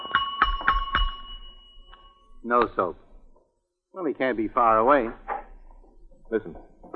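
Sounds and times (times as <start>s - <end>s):
bell being struck: 0.0s - 2.8s
speech: 2.4s - 3.0s, 4.0s - 5.2s, 6.3s - 6.7s.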